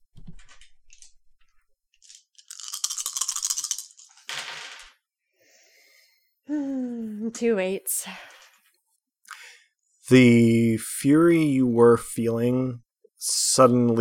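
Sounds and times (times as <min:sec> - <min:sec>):
five dice rolling: 0:02.0 - 0:05.0
speech: 0:07.3 - 0:08.3, 0:10.1 - 0:13.9.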